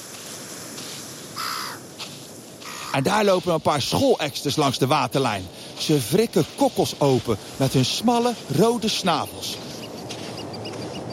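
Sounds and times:
steady hiss of noise: 0.0s - 11.1s
black-headed gulls calling: 1.4s - 4.7s, 6.7s - 11.1s
speech: 2.9s - 9.6s.

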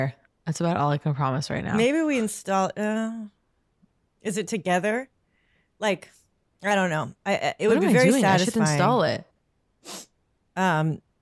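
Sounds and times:
speech: 0.0s - 3.4s, 4.2s - 5.1s, 5.8s - 11.0s
sniffle: 9.8s - 10.2s.

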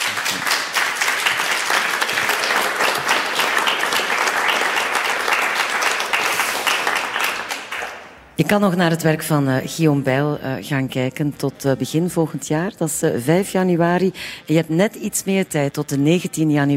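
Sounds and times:
audience applause: 0.0s - 8.2s
speech: 8.5s - 16.7s.

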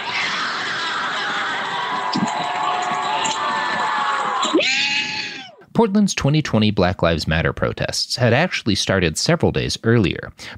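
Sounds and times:
protest crowd cheering and shouting: 0.0s - 5.6s
speech: 5.8s - 10.5s.

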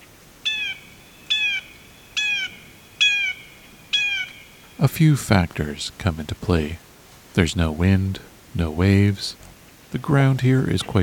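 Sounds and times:
blue jay call echoing: 0.0s - 5.2s
speech: 4.8s - 6.8s, 7.4s - 11.0s.

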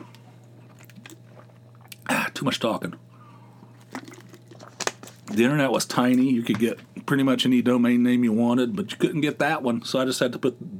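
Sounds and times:
person sipping water: 0.0s - 2.1s, 3.6s - 5.3s
speech: 2.4s - 3.1s, 5.3s - 10.7s.

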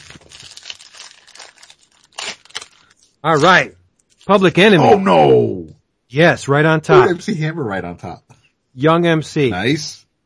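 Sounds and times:
trading card pack plastic wrapper being torn open: 0.0s - 4.4s
speech: 3.2s - 10.0s.

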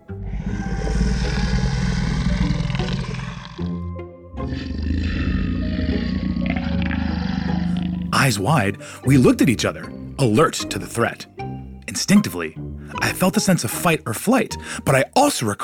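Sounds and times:
fierce monster growl: 0.1s - 8.4s
speech: 8.2s - 11.3s, 12.0s - 15.6s.

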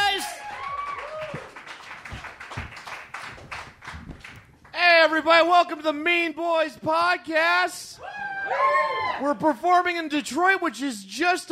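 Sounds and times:
audience clapping at a live podcast show in Detroit: 0.0s - 4.8s
speech: 5.1s - 7.9s, 8.5s - 11.4s.

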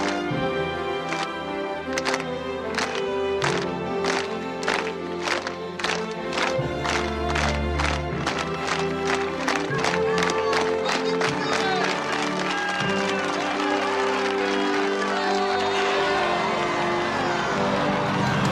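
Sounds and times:
crowd clapping slowly: 0.0s - 18.5s.

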